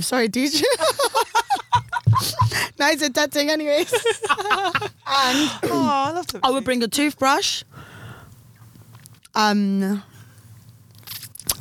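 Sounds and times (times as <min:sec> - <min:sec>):
speech: 0:00.0 - 0:01.4, 0:02.2 - 0:07.7, 0:09.4 - 0:10.1
laughter: 0:00.6 - 0:02.7, 0:03.8 - 0:06.8
chewing food: 0:10.9 - 0:11.5.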